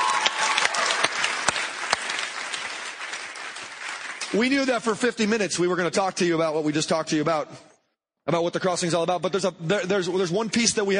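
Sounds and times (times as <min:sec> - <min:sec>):
audience applause: 0:00.0 - 0:04.9
speech: 0:04.3 - 0:07.7, 0:08.3 - 0:10.9.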